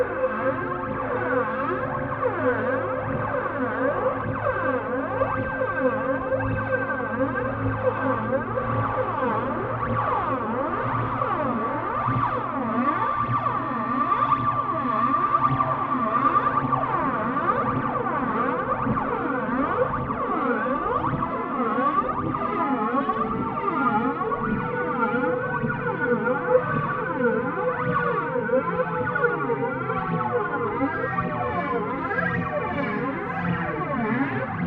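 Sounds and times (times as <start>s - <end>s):
MicroFreak synthesizer sirens: 0.0s - 34.6s.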